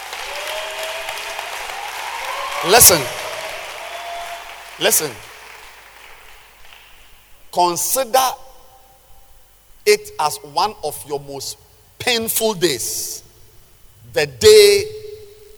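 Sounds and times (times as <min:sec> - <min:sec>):
audience clapping hands: 0:00.0 - 0:07.4
speech: 0:02.6 - 0:03.2, 0:04.8 - 0:05.3, 0:07.6 - 0:08.4, 0:09.8 - 0:13.2, 0:14.1 - 0:15.0.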